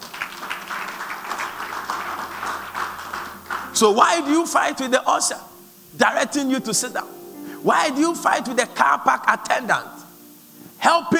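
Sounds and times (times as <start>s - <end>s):
audience clapping: 0.0s - 4.0s
speech: 3.8s - 10.0s, 10.8s - 11.1s.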